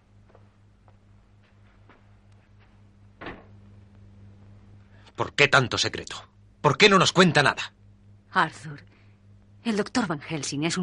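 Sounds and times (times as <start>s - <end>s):
steady low electrical hum: 0.0s - 10.8s
door shutting: 3.2s - 3.6s
speech: 5.2s - 8.9s, 9.6s - 10.8s.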